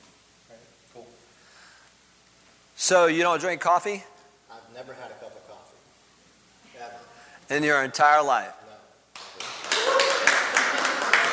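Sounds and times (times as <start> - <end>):
speech: 2.9 - 4.1, 4.8 - 5.3, 6.8 - 8.6
audience clapping: 9.1 - 11.3.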